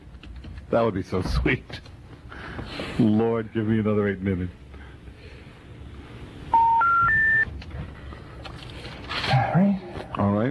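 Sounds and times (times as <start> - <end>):
low noise: 0.0 - 10.4
speech: 0.7 - 1.9, 2.6 - 4.6, 9.5 - 10.4
telephone keypad tones: 6.5 - 7.5.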